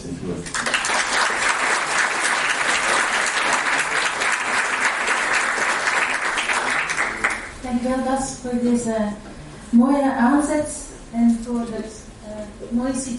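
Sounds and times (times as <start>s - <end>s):
audience applause: 0.5s - 7.6s
speech: 7.9s - 12.0s, 12.6s - 13.1s.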